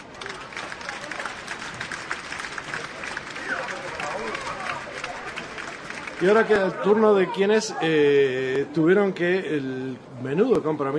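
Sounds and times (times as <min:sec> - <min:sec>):
applause: 0:00.0 - 0:06.8
speech: 0:06.2 - 0:10.9.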